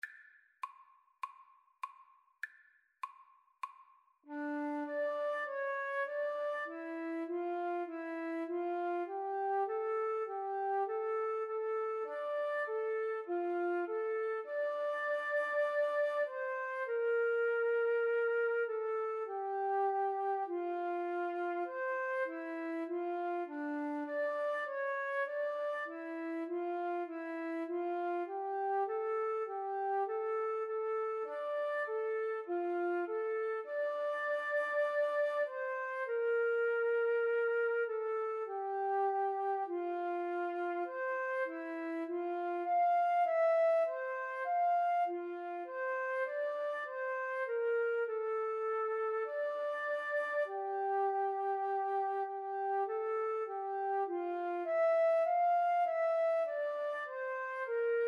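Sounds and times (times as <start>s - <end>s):
flute duet: 4.3s - 58.0s.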